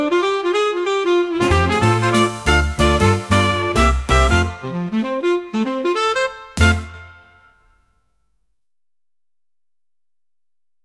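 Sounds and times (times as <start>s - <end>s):
Christmas jazz swing music: 0.0s - 7.4s.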